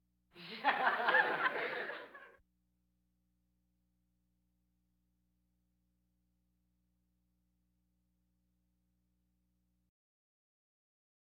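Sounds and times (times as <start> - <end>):
audience laughter: 0.4 - 2.4.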